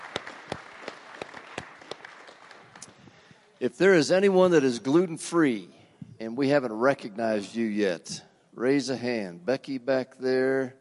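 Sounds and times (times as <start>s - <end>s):
audience applauding: 0.0s - 3.3s
speech: 3.6s - 10.7s.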